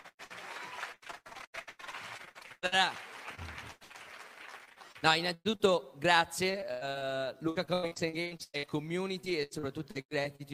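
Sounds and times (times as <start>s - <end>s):
audience applause: 0.0s - 5.0s
speech: 2.6s - 3.1s, 5.0s - 10.5s.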